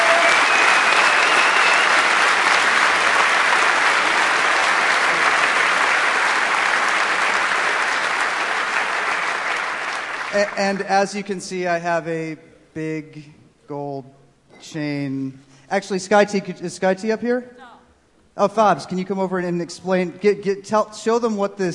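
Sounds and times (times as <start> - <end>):
crowd applause: 0.0 - 11.2
speech: 10.4 - 17.7, 18.4 - 21.7.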